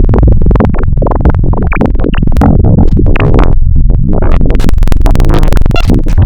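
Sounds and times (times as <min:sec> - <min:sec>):
complex sine frequency modulation synthesized tones from wavetables: 0:00.0 - 0:06.2.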